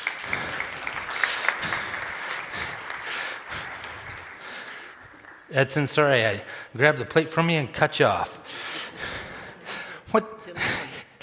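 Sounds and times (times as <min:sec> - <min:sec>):
crowd applauding: 0:00.0 - 0:06.4
speech: 0:05.5 - 0:08.5, 0:10.1 - 0:10.4.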